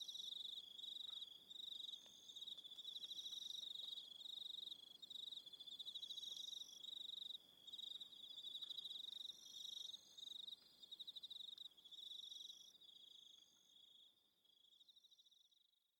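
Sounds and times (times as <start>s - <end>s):
crickets chirping in a dense chorus: 0.0s - 15.7s.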